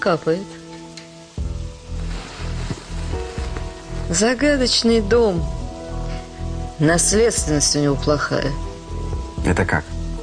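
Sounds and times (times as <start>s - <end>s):
speech: 0.0s - 0.6s, 4.1s - 5.6s, 6.8s - 8.7s, 9.4s - 10.0s
heavy rain pouring: 0.0s - 10.2s.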